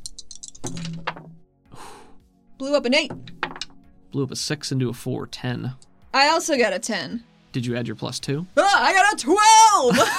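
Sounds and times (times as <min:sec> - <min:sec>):
dice being rolled: 0:00.0 - 0:01.3, 0:03.1 - 0:03.8
speech: 0:02.6 - 0:03.3, 0:04.1 - 0:10.1
laughter: 0:09.9 - 0:10.1.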